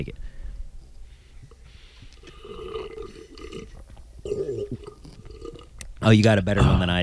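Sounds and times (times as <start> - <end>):
speech: 0.0 - 0.2, 6.0 - 7.0
big gross slurp: 1.8 - 5.8.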